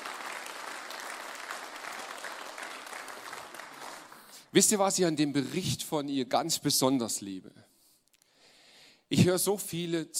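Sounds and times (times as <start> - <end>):
audience applause: 0.0 - 4.4
speech: 4.5 - 7.7, 9.2 - 10.1.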